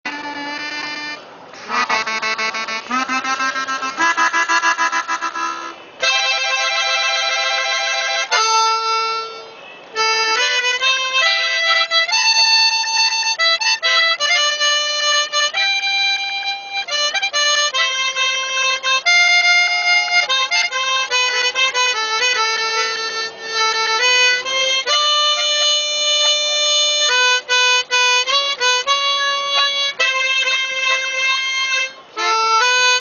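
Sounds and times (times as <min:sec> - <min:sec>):
harmonica: 0:00.0 - 0:32.9.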